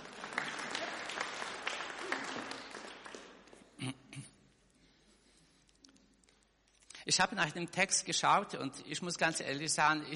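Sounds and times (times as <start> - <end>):
audience clapping: 0.0 - 3.8
speech: 7.1 - 10.1.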